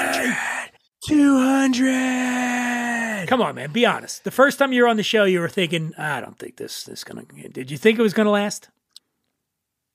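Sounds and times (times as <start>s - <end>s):
speech: 0.2s - 2.4s, 3.3s - 8.8s
voice imitating cheering crowd: 1.0s - 3.6s.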